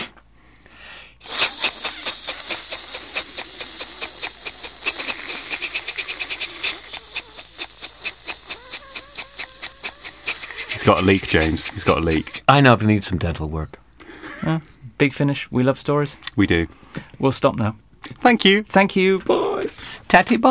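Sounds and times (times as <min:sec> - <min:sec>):
voice imitating a water sprinkler: 0:01.2 - 0:12.5
speech: 0:10.9 - 0:13.8, 0:14.4 - 0:19.4, 0:20.1 - 0:20.4.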